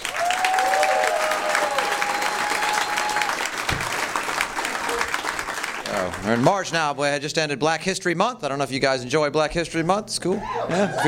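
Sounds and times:
audience applause welcoming a comedian at a stand-up comedy show: 0:00.0 - 0:07.2
speech: 0:06.2 - 0:11.0
laughter: 0:10.3 - 0:11.0.

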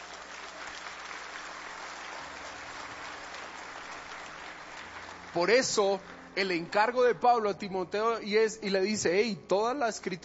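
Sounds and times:
audience applause: 0:00.0 - 0:06.7
speech: 0:05.3 - 0:10.2.

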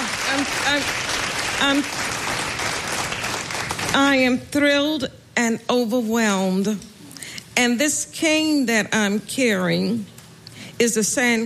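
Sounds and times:
audience giving a standing ovation: 0:00.0 - 0:04.0
speech: 0:00.4 - 0:02.1, 0:03.9 - 0:06.9, 0:07.6 - 0:10.1, 0:10.8 - 0:11.4.

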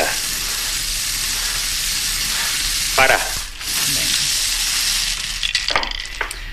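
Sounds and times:
lottery drum spinning with tumbling balls: 0:00.0 - 0:06.5
lottery balls clacking together: 0:02.2 - 0:06.5.

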